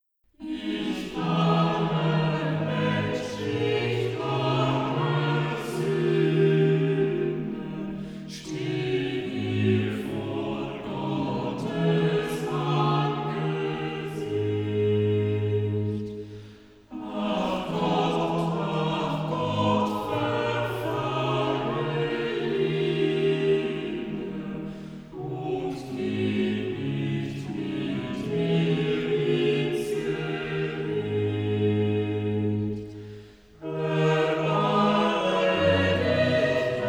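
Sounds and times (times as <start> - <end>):
chorus singing a chorale cantata: 0.4 - 36.8.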